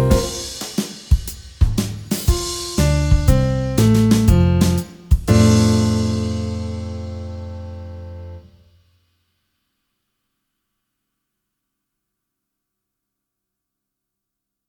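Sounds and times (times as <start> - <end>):
play-along swing music: 0.0 - 8.4.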